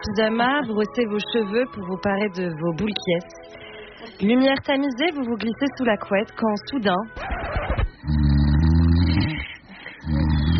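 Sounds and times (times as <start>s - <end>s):
speech: 0.0s - 7.4s
spouse snoring in bed: 8.0s - 10.5s.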